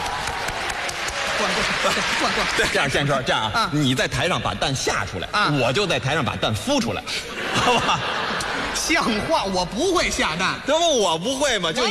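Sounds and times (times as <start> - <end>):
audience applause: 0.0 - 3.0
laughter: 1.3 - 3.0, 7.1 - 9.6
speech: 1.4 - 8.2, 8.9 - 11.8.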